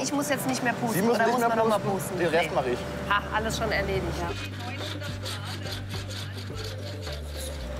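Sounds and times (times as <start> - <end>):
speech: 0.0 - 5.4
cutting the rim of a blown glass vase: 4.2 - 7.7.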